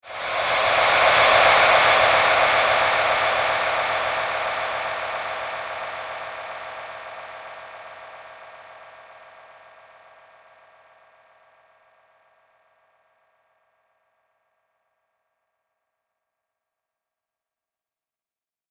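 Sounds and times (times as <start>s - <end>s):
ghost graveyard sweep: 0.0s - 8.9s.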